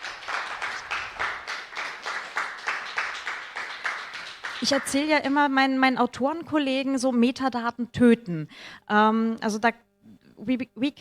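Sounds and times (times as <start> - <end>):
rhythmic audience applause: 0.0 - 5.5
speech: 4.6 - 9.8, 10.4 - 10.9.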